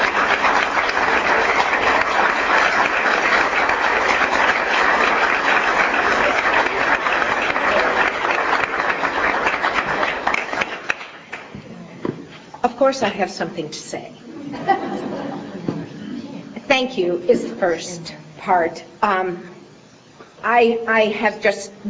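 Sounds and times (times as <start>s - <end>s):
audience applause: 0.0s - 11.6s
speech: 12.8s - 14.2s, 16.8s - 19.5s, 20.4s - 21.8s
laughter: 14.3s - 16.6s.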